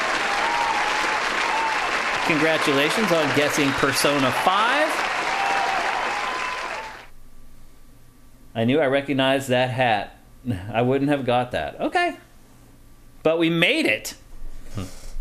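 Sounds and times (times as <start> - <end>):
applause sound effect: 0.0 - 7.1
speech: 2.3 - 5.0, 8.6 - 12.3, 13.2 - 14.2, 14.8 - 15.0.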